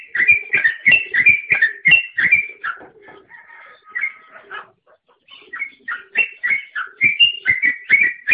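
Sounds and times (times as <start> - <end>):
songbird singing fast whistled chirps: 0.0 - 2.8, 5.3 - 8.3.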